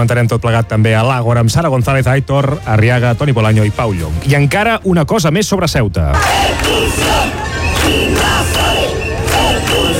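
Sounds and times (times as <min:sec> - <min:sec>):
speech: 0:00.0 - 0:08.6
crowd of demonstrators chanting a slogan: 0:06.2 - 0:09.9.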